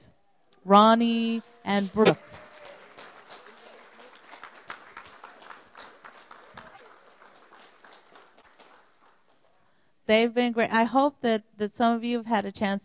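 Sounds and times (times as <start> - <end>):
speech: 0.6 - 2.4, 10.1 - 12.8
audience applause: 1.4 - 9.6.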